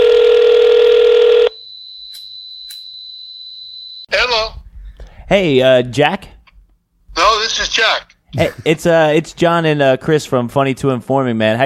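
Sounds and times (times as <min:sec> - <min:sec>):
loud steady electronic telephone tone: 0:00.0 - 0:04.1
speech: 0:05.3 - 0:06.4, 0:07.2 - 0:11.6.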